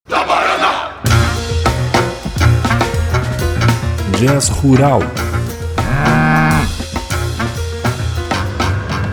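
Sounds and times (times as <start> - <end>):
loud band music with rhythmic percussive hits: 1.1 - 9.1
speech: 4.2 - 5.2
cow mooing: 5.8 - 6.8.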